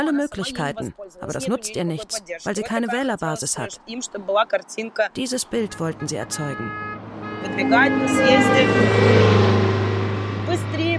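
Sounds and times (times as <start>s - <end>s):
speech: 0.0s - 9.7s, 10.5s - 10.9s
loud car horns honking: 5.3s - 10.9s
engine noise: 5.4s - 10.9s.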